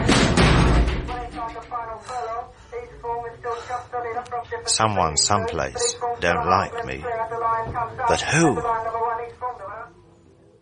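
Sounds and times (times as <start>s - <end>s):
door kicked shut: 0.0s - 1.6s
speech: 4.6s - 8.9s.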